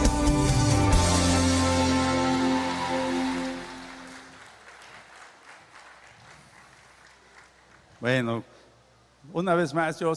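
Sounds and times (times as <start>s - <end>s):
sustained musical tones: 0.2s - 4.3s
audience applause: 1.4s - 8.0s
speech: 8.0s - 8.6s, 9.2s - 10.1s.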